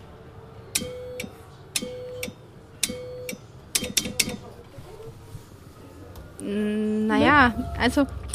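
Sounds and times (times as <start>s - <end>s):
Morse code being keyed: 0.8s - 4.0s
speech: 7.4s - 8.2s.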